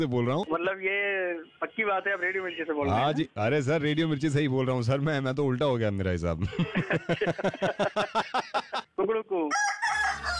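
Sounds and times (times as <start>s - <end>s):
speech: 0.0s - 10.3s
laughter: 6.4s - 8.9s
rooster crowing sound effect: 9.5s - 10.3s.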